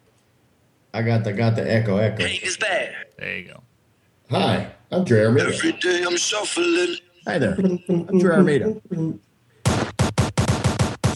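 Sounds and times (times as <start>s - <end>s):
speech: 1.0s - 3.7s, 4.3s - 9.3s
gunshots: 9.6s - 11.1s.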